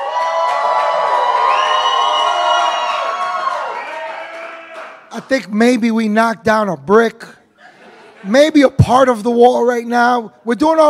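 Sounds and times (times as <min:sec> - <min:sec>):
audience shouting and whooping: 0:00.0 - 0:05.0
speech: 0:05.3 - 0:07.4, 0:08.2 - 0:10.8
laughter: 0:07.6 - 0:08.6.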